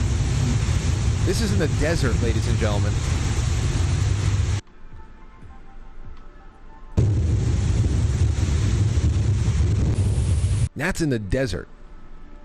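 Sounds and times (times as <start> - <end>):
flash flood water: 0.0 - 4.6
storm wind in Vegas: 0.0 - 4.6, 7.0 - 10.7
speech: 1.3 - 3.3, 10.8 - 11.8.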